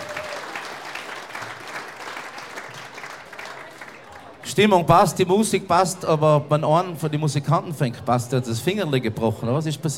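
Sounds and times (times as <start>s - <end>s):
audience applause: 0.0s - 4.3s
speech: 4.5s - 9.9s.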